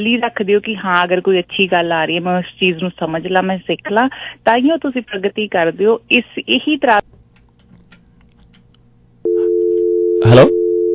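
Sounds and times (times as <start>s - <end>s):
speech: 0.0s - 7.2s, 10.2s - 10.6s
telephone busy tone after a dropped call: 9.3s - 10.9s.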